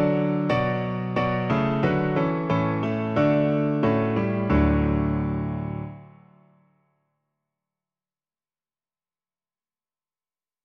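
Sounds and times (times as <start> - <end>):
piano: 0.0 - 6.8.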